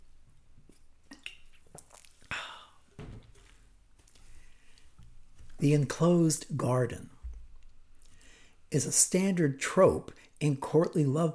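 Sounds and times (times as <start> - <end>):
sipping and swallowing a drink: 0.7 - 4.9
speech: 5.6 - 7.1, 8.7 - 11.3.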